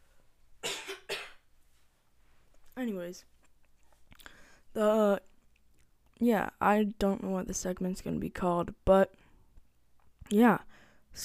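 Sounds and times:
person coughing: 0.6 - 1.4
speech: 2.8 - 3.4, 4.8 - 5.3, 6.2 - 9.2, 10.3 - 11.2.

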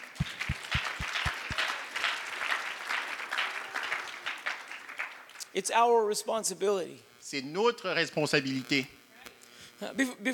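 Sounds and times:
evenly spaced low thumps: 0.0 - 1.5
crowd applause: 0.0 - 5.4
speech: 5.6 - 9.0, 9.8 - 10.3.

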